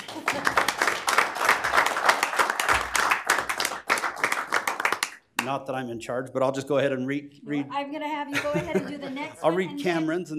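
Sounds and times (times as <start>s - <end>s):
laughter: 0.0s - 0.7s, 8.3s - 10.0s
audience applause: 0.0s - 5.2s
speech: 5.5s - 10.3s.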